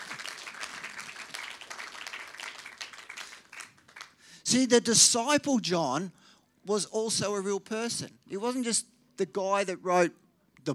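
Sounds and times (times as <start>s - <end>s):
audience applause: 0.0s - 4.2s
speech: 4.5s - 10.7s.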